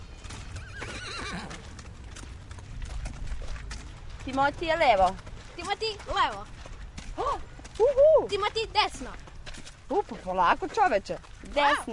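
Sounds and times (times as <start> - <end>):
ridden horse hooves clip-clopping: 0.0 - 11.9
horse whinnying: 0.5 - 1.6
speech: 4.2 - 6.6, 7.2 - 9.3, 9.9 - 11.9.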